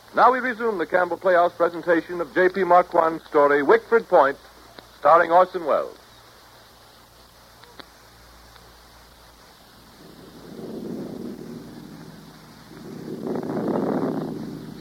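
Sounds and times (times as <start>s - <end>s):
speech: 0.1s - 6.0s
wind rising before a thunderstorm: 8.8s - 14.7s.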